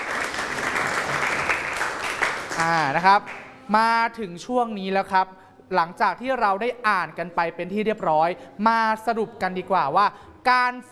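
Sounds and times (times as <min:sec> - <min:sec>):
group applauding: 0:00.0 - 0:03.6
speech: 0:02.6 - 0:10.8.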